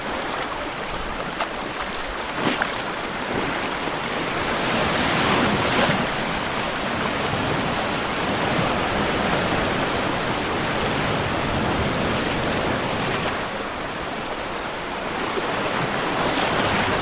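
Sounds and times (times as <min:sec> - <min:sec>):
reversed ocean waves: 0:00.0 - 0:17.0.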